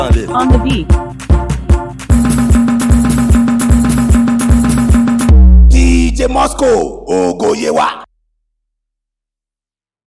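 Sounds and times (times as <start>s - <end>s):
beat: 0.0s - 7.6s.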